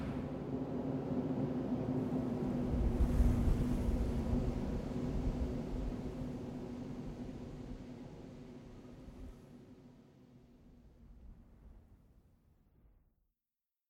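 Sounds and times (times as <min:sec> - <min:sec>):
ambient intro music: 0:00.2 - 0:08.4.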